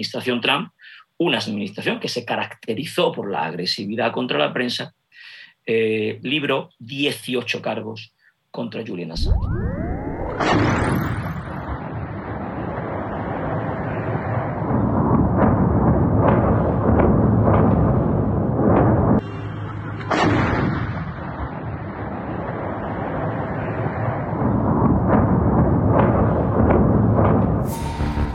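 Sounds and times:
speech: 0:00.0 - 0:09.8
bombs and missiles detonating in Mariupol: 0:09.2 - 0:19.2, 0:20.1 - 0:28.3.

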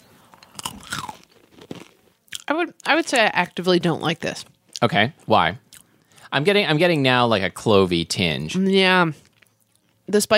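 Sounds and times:
person crunching granola: 0:00.3 - 0:02.5
speech: 0:02.5 - 0:05.6, 0:06.3 - 0:09.2, 0:10.1 - 0:10.3.

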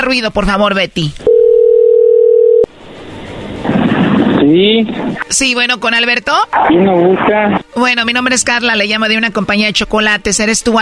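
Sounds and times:
speech: 0:00.0 - 0:01.3, 0:04.5 - 0:10.8
telephone dial tone while calling: 0:01.3 - 0:02.7.

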